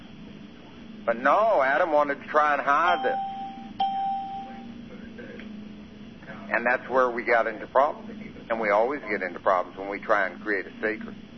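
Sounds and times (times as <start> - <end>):
low hum: 0.0 - 11.3
speech: 1.0 - 3.3, 6.5 - 11.3
phone line beep: 2.9 - 4.7.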